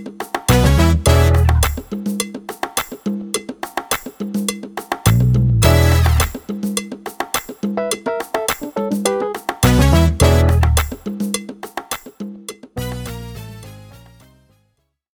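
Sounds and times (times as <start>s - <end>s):
drumless funk music: 0.5s - 2.0s, 5.1s - 6.5s, 7.8s - 11.1s, 12.8s - 14.2s.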